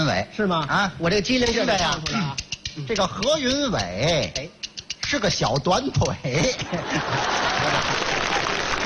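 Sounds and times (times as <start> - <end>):
speech: 0.1 - 8.4
laughter: 6.2 - 8.8
audience applause during a comic crosstalk stage performance: 7.0 - 8.8.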